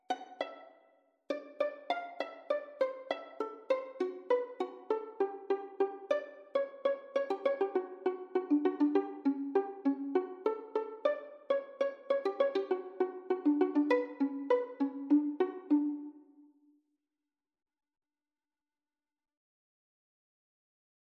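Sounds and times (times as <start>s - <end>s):
pizzicato polka played as a violin and cello duet: 0.0s - 0.7s, 1.3s - 16.2s.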